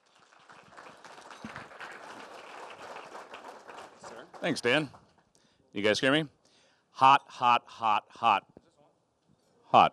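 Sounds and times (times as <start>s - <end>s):
crowd applause: 0.0s - 5.0s
speech: 4.4s - 5.0s, 5.8s - 6.4s, 7.0s - 8.5s, 9.7s - 9.9s.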